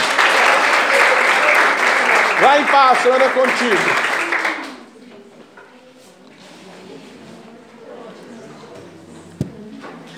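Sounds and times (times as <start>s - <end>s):
audience applause: 0.0s - 4.9s
speech: 2.4s - 4.1s.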